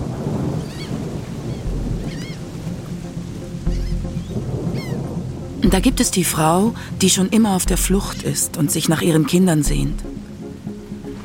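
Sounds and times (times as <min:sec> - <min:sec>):
deep rumbling thunder: 0:00.0 - 0:07.0
steady rain on a street at night: 0:00.0 - 0:11.2
high quick chirping calls: 0:03.6 - 0:05.0
speech: 0:05.7 - 0:10.3.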